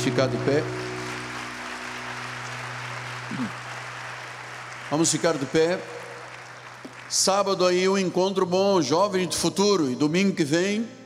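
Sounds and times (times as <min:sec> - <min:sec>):
speech: 0:00.0 - 0:00.9, 0:03.3 - 0:03.6, 0:04.9 - 0:06.0, 0:07.1 - 0:11.0
audience applause: 0:00.0 - 0:08.1.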